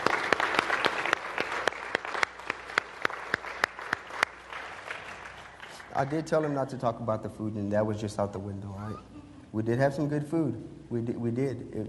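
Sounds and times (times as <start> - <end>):
church audience applause: 0.0 - 6.7
speech: 6.0 - 11.8.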